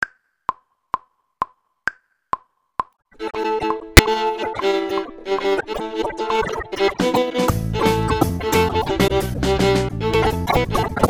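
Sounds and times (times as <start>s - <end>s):
viola: 3.2s - 11.0s.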